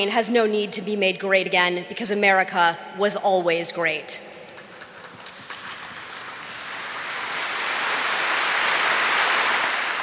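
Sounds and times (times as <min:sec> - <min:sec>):
speech: 0:00.0 - 0:04.4
applause: 0:04.6 - 0:10.0.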